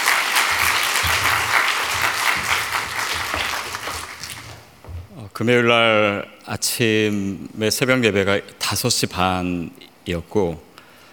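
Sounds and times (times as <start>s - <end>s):
audience applause: 0.0s - 4.9s
speech: 5.4s - 10.7s.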